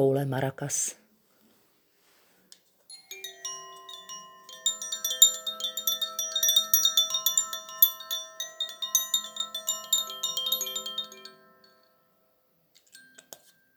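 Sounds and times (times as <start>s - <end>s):
speech: 0.0s - 1.0s
Koshi chimes ringing: 2.9s - 13.7s
soft scattered tinkles of Koshi chimes: 2.9s - 13.7s.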